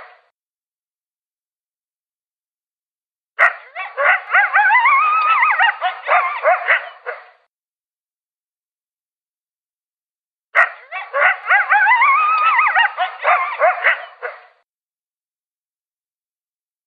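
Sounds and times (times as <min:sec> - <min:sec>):
coyote yipping and howling: 0:03.4 - 0:07.3, 0:10.6 - 0:14.5.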